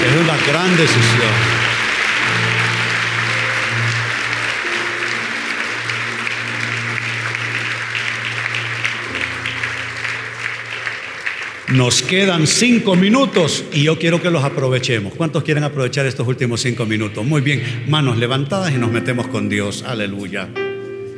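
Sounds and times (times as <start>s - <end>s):
audience applause: 0.0s - 15.0s
speech: 0.4s - 1.6s, 11.7s - 20.6s.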